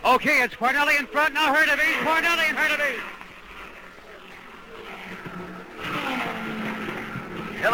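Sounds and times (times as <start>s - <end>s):
speech: 0.1s - 3.2s, 7.6s - 7.7s
race cars roaring around an oval track: 0.7s - 7.7s.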